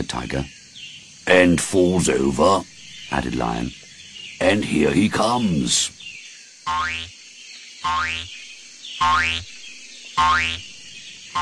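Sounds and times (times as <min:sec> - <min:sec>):
speech: 0:00.0 - 0:00.6, 0:01.3 - 0:03.8, 0:04.4 - 0:06.0, 0:06.7 - 0:07.2, 0:07.8 - 0:08.4, 0:09.0 - 0:09.5, 0:10.2 - 0:10.7
cartoon boing of kangaroo bouncing: 0:07.9 - 0:08.2, 0:09.0 - 0:09.4, 0:10.2 - 0:10.6.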